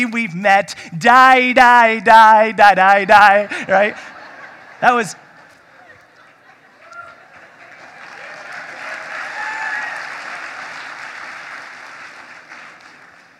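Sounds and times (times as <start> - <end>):
speech: 0.0 - 4.1, 4.8 - 5.2
laughter: 2.7 - 8.0
audience applauding: 6.2 - 13.3
whoops and cheers: 8.1 - 10.4.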